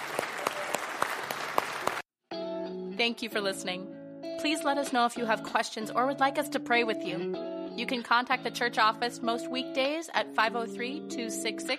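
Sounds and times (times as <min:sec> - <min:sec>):
audience applauding: 0:00.0 - 0:02.1
speech: 0:03.0 - 0:11.7.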